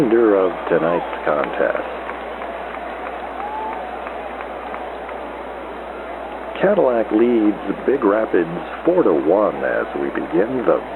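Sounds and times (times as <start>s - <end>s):
speech: 0.0s - 2.0s, 6.6s - 10.9s
round of applause from baseball crowd: 0.0s - 10.9s
faint whistle: 3.3s - 4.8s.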